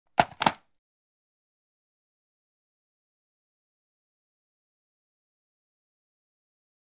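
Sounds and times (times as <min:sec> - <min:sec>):
cell phone hung up in cradle: 0:00.2 - 0:00.6.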